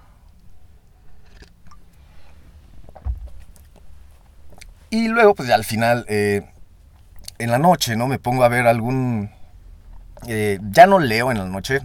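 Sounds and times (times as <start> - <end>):
person sipping coffee: 1.1 - 3.9, 4.5 - 4.8
low thump: 2.9 - 3.7
speech: 4.9 - 6.5, 7.4 - 9.4, 10.2 - 11.8.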